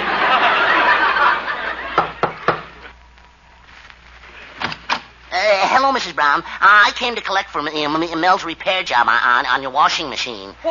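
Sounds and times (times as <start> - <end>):
laughter: 0.0 - 2.9
knocking on a door: 2.0 - 2.7
speech: 5.9 - 10.6.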